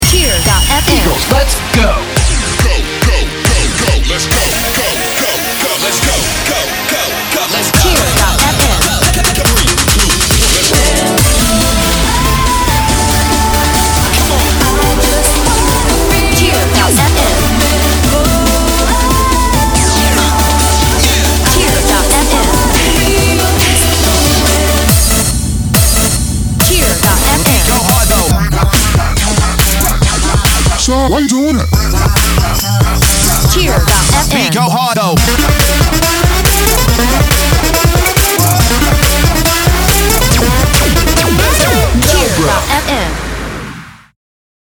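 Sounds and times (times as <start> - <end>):
dance music loop: 0.0 - 43.2.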